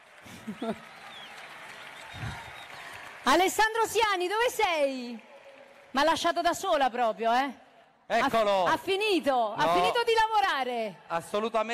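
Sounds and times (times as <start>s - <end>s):
audience applause: 0.0s - 6.7s
speech: 0.2s - 1.0s, 3.2s - 5.3s, 5.9s - 11.7s.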